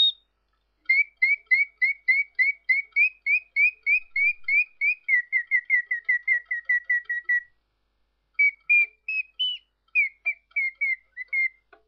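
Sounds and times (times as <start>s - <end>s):
chirping in a rectangular cage: 0.0s - 11.8s.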